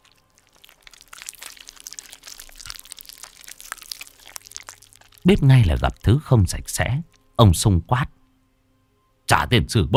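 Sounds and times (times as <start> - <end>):
crunchy chewing of a raw silver carp: 0.0 - 7.3
speech: 5.2 - 8.1, 9.4 - 9.9.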